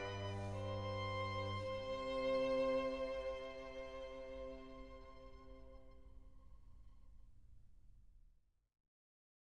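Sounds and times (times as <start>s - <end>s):
two violins and orchestra playing a largo in C minor: 0.0s - 6.2s.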